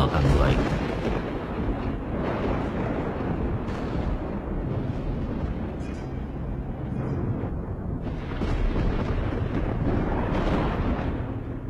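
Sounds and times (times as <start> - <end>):
heavy thunder over a mountainside: 0.0 - 11.6
lightning cracks: 0.0 - 11.6
strong wind: 0.0 - 11.6.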